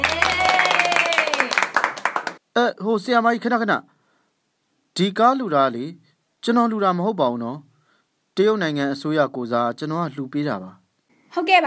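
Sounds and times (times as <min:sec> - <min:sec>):
audience applauding to honour a donor: 0:00.0 - 0:02.4
speech: 0:02.6 - 0:03.9, 0:05.0 - 0:07.7, 0:08.4 - 0:11.6.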